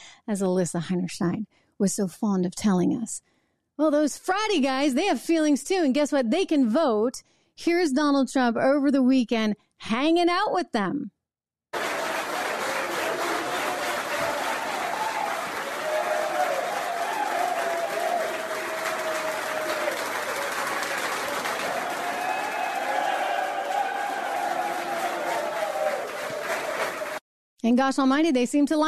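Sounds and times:
speech: 0.2 - 11.9, 27.7 - 28.8
scattered applause: 11.7 - 27.2
large stadium crowd cheering: 11.8 - 27.2.

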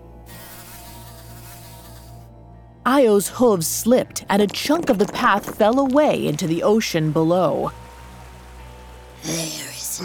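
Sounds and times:
gadfly buzzing: 0.3 - 2.3
speech: 2.9 - 7.8.

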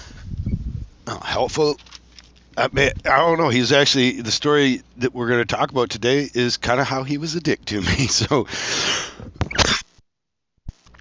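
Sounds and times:
speech: 1.1 - 1.9, 2.6 - 9.3
laughter: 7.8 - 8.5
cough: 9.6 - 9.9.

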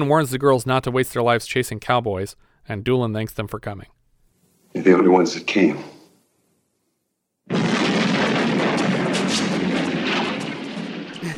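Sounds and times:
speech: 0.0 - 4.0, 4.7 - 5.9
explosion blowing out a jail wall: 7.5 - 11.3.

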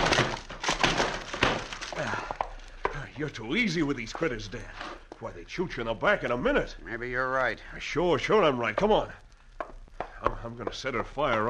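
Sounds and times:
wooden door being busted in: 0.0 - 2.0
speech: 3.2 - 9.2, 10.4 - 11.4.

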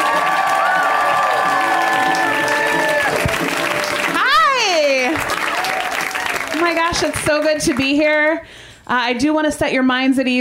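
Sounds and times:
crowd cheering and shouting: 0.0 - 6.5
crowd applauding: 0.0 - 8.0
speech: 6.9 - 10.4.

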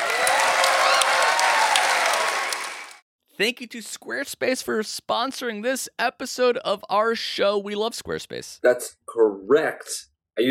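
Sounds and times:
round of applause: 0.0 - 3.0
speech: 3.4 - 10.4.

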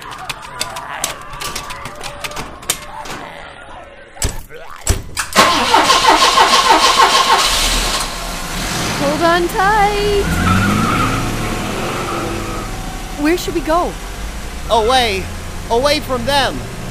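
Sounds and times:
clunks and rattles: 0.0 - 3.4, 4.2 - 8.2
ambulance engine cranking, catching and revving: 5.2 - 16.8
speech: 9.4 - 10.4, 13.2 - 14.0, 14.7 - 16.7.

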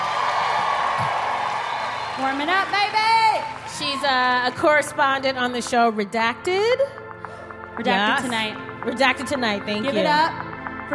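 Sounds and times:
whoops: 0.0 - 2.2
audience clapping and cheering: 0.0 - 5.2
speech: 2.2 - 7.0, 7.8 - 10.9.

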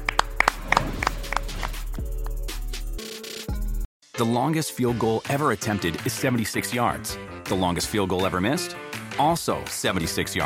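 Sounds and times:
hand clapping: 0.0 - 2.8
speech: 4.2 - 10.4.

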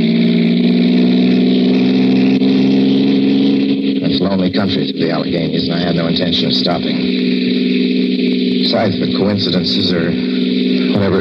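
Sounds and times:
car engine droning through country in the Alleghenies: 0.0 - 11.1
speech: 4.4 - 8.0, 8.7 - 10.3, 11.0 - 11.1.

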